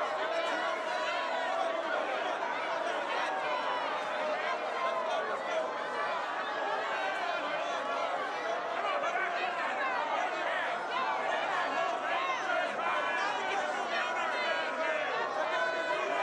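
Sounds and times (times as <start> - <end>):
unruly crowd: 0.0 - 16.2.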